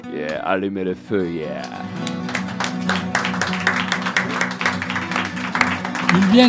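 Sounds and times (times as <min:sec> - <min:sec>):
speech: 0:00.2 - 0:02.2, 0:06.2 - 0:06.4
audience applause: 0:01.4 - 0:06.4.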